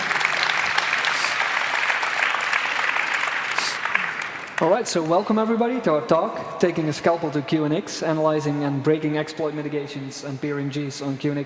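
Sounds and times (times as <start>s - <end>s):
audience applause: 0.0s - 5.1s
speech: 4.6s - 11.4s.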